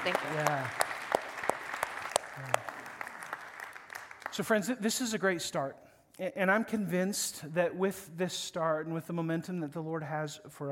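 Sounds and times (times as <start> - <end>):
speech: 0.0 - 0.8, 2.4 - 2.6, 4.4 - 10.6
audience applause: 0.0 - 4.5.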